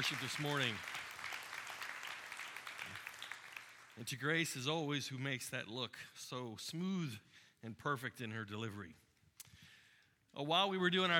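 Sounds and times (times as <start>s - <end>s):
speech: 0.0s - 1.0s, 4.0s - 9.0s, 10.3s - 11.1s
church congregation clapping softly for the worship team: 0.0s - 4.7s.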